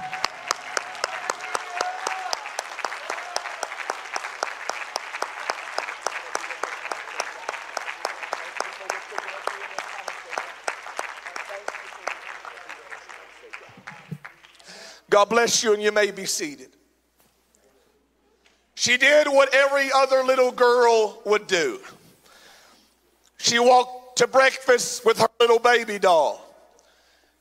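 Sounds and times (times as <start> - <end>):
large group applause: 0.0 - 15.0
speech: 15.2 - 16.7, 18.8 - 22.0, 23.5 - 26.4.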